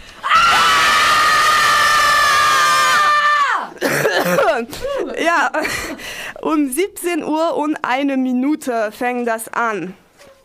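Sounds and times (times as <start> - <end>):
crowd of women screaming at demonstration: 0.2 - 3.8
speech: 4.3 - 10.0.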